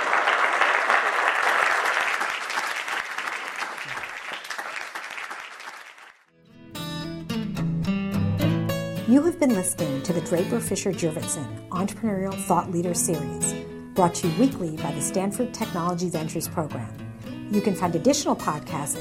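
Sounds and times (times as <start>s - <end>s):
audience applause after a lecture: 0.0s - 6.2s
bright instrumental music: 6.4s - 18.9s
speech: 9.1s - 18.9s.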